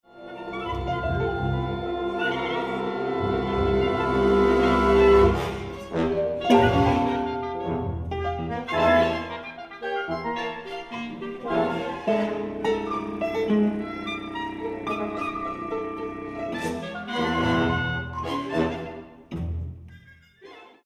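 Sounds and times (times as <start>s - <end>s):
orchestra playing: 0.1s - 20.6s.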